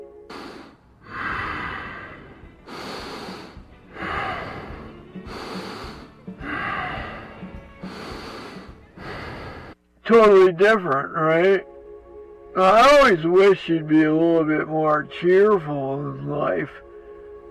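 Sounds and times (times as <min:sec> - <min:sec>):
breathing while asleep: 0:00.3 - 0:09.8
speech: 0:10.1 - 0:11.7, 0:12.6 - 0:16.8.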